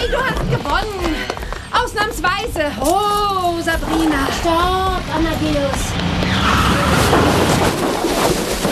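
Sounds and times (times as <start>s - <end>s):
speech: 0.1s - 8.5s
car crashing into a hay wagon: 6.5s - 8.7s.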